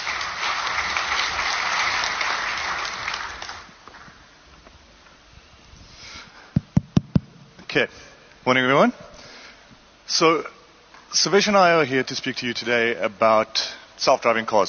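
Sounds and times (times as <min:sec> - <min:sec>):
audience applause: 0:00.0 - 0:04.1
speech: 0:07.8 - 0:09.1, 0:10.1 - 0:14.6.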